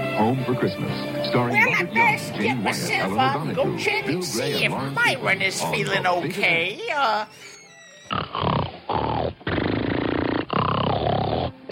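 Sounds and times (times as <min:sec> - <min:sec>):
speech: 0:00.2 - 0:07.5, 0:08.1 - 0:08.7
man snoring: 0:08.1 - 0:11.7.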